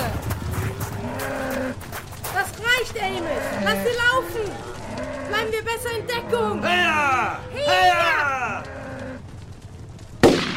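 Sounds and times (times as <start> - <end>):
rumbling background: 0.0 - 10.5
herd of cattle lowing: 0.6 - 1.8, 2.8 - 9.2
speech: 5.4 - 8.3.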